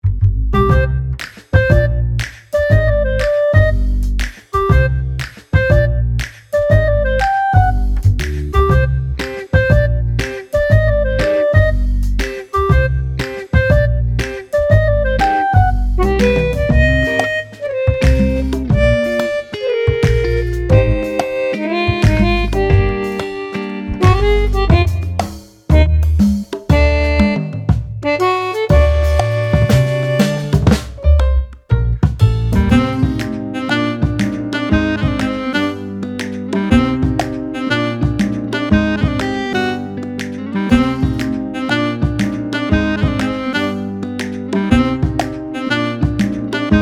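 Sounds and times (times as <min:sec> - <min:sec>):
detective secret meeting music: 0:00.6 - 0:46.8.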